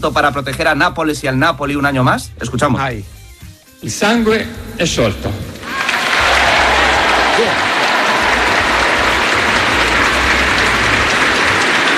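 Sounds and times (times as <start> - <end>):
speech: 0.0 - 3.2, 3.8 - 5.4
audience applauding during mass: 5.6 - 11.9.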